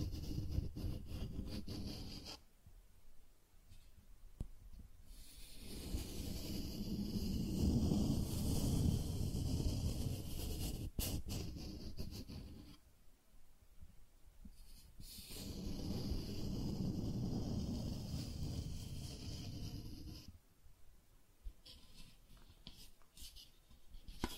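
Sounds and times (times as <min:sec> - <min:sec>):
cardboard scratched and rubbed in long rasping strokes: 0:00.0 - 0:02.4, 0:05.2 - 0:12.8, 0:14.7 - 0:20.3, 0:21.6 - 0:24.3.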